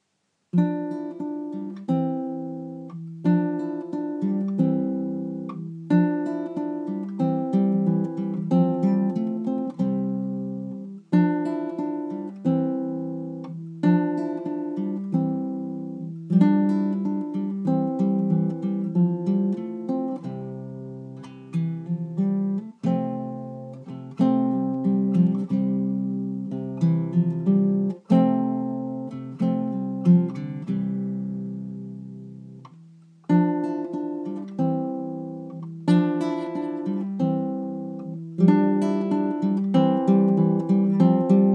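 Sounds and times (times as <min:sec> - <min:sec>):
acoustic guitar: 0:00.0 - 0:41.5.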